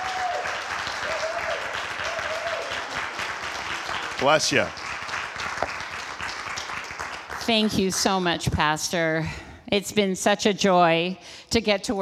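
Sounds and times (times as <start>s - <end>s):
crowd applause welcoming a speaker: 0.0s - 8.3s
speech: 4.2s - 4.8s, 7.5s - 11.9s.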